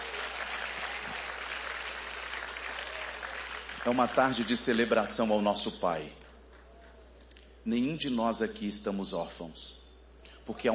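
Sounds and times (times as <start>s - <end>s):
audience applauding: 0.0s - 4.8s
speech: 3.8s - 6.2s, 7.6s - 9.8s, 10.4s - 10.7s.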